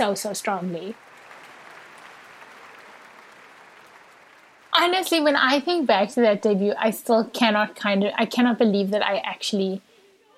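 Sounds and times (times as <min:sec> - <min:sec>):
speech: 0:00.0 - 0:01.1, 0:04.8 - 0:10.3
audience applause: 0:00.0 - 0:05.4.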